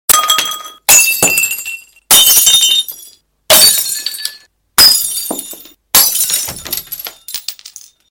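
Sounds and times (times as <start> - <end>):
glass breaking: 0.1 - 8.1.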